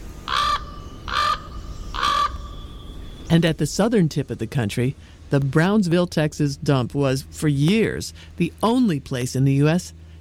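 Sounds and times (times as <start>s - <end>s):
low rumble: 0.0s - 10.2s
raven calls: 0.2s - 2.9s
speech: 3.3s - 10.0s.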